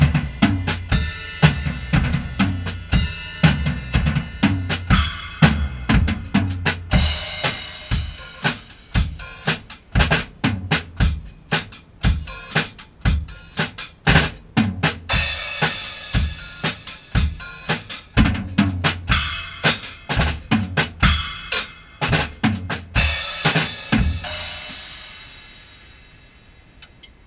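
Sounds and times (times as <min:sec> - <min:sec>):
soggy bass drum: 0:00.0 - 0:24.8.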